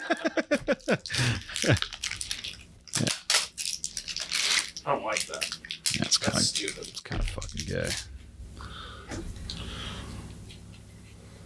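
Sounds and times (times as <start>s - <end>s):
laughter: 0.0s - 2.0s, 5.9s - 6.8s
speech: 0.1s - 1.9s
someone chewing the plastic top off a bottle: 0.6s - 8.0s.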